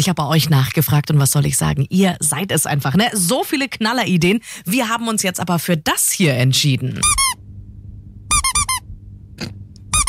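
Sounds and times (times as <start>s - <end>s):
speech: 0.0s - 7.4s
rubber duck squeaking: 7.0s - 7.4s, 8.3s - 8.8s.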